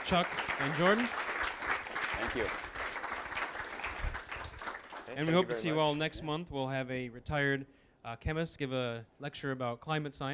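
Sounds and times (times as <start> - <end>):
audience applause: 0.0 - 5.8
speech: 0.1 - 1.3, 2.2 - 2.7, 5.1 - 10.3.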